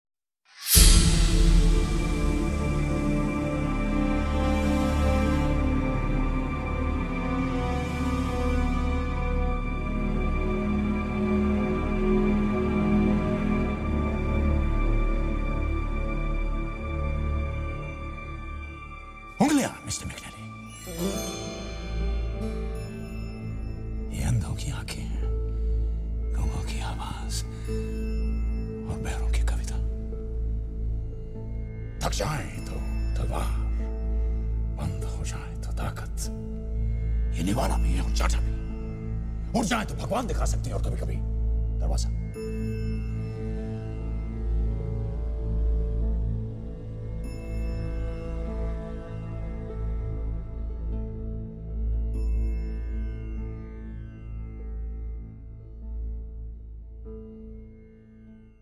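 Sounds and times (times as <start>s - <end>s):
instrumental music: 0.7s - 58.5s.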